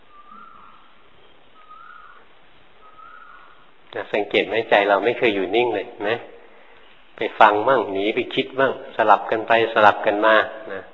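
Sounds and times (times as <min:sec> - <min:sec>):
birds singing: 0:00.0 - 0:05.8, 0:06.4 - 0:08.2
hiss: 0:00.0 - 0:10.9
speech: 0:03.9 - 0:06.4, 0:07.2 - 0:10.9.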